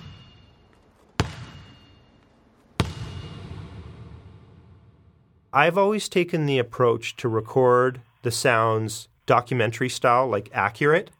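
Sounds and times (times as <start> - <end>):
basketball slammed on the ground: 0.0 - 2.1, 2.8 - 4.7
ball ping near microphone: 0.0 - 4.8
speech: 5.5 - 11.1.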